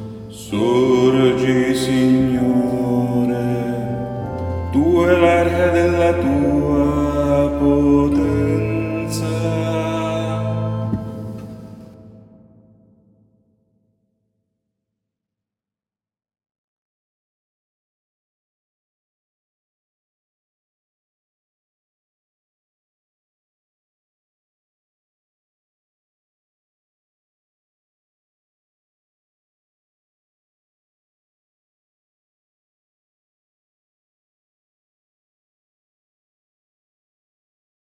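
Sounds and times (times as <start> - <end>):
bass voices singing a psalm: 0.3 - 12.1.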